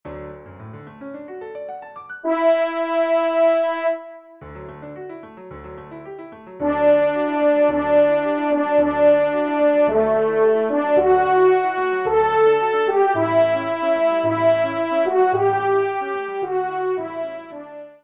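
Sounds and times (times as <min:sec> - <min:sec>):
horn: 0:02.2 - 0:04.4, 0:06.6 - 0:18.0.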